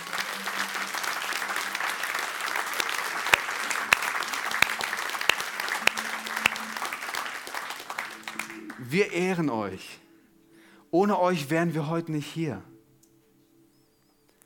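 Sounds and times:
audience applause: 0:00.0 - 0:08.9
speech: 0:08.9 - 0:10.0, 0:10.9 - 0:12.7.

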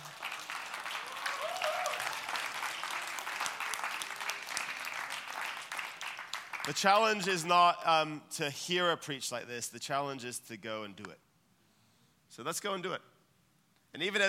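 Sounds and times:
audience applauding: 0:00.0 - 0:07.2
speech: 0:06.6 - 0:11.2, 0:12.3 - 0:13.1, 0:13.9 - 0:14.2.

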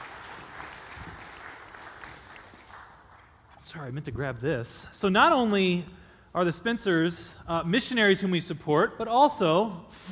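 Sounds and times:
audience applause: 0:00.0 - 0:03.5
speech: 0:03.7 - 0:10.1.

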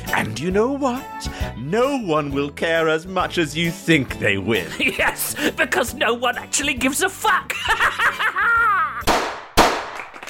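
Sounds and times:
speech: 0:00.2 - 0:08.3
laughter: 0:04.5 - 0:05.8, 0:07.5 - 0:09.1
gunshot sound effects: 0:09.1 - 0:10.1.

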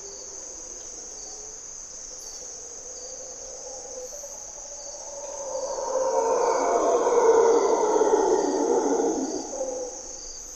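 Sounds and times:
high-pitched insect whine: 0:00.0 - 0:10.5
mantled howler monkey howling: 0:05.0 - 0:10.1.

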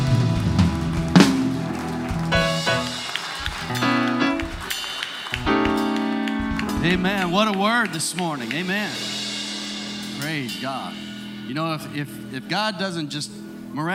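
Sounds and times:
audience clapping in praise: 0:00.0 - 0:09.4
speech: 0:06.8 - 0:09.2, 0:10.2 - 0:13.9.

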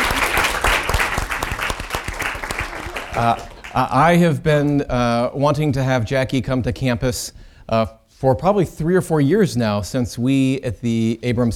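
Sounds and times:
audience applause: 0:00.0 - 0:04.0
speech: 0:03.2 - 0:11.5.

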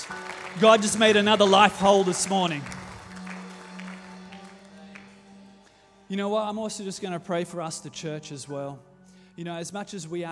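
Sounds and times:
audience applause: 0:00.0 - 0:05.7
speech: 0:00.1 - 0:02.8, 0:06.1 - 0:10.3.

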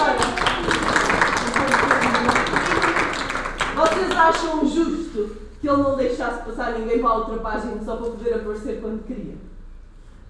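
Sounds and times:
audience applause: 0:00.0 - 0:04.3
speech: 0:04.3 - 0:09.5.

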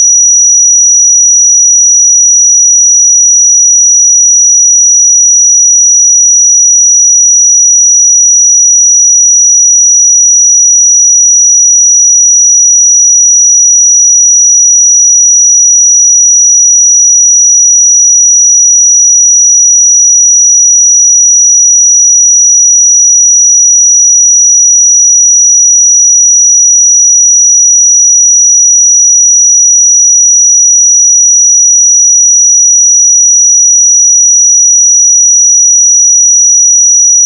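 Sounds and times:
5831 Hz pure sine tone: 0:00.0 - 0:37.2.

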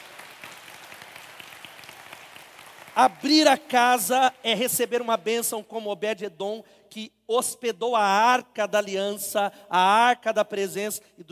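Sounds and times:
crowd applauding: 0:00.0 - 0:04.1
speech: 0:03.0 - 0:11.3.

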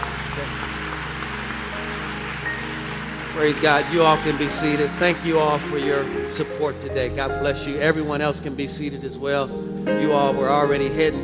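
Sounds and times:
audience applause: 0:00.0 - 0:07.0
speech: 0:03.4 - 0:11.2.

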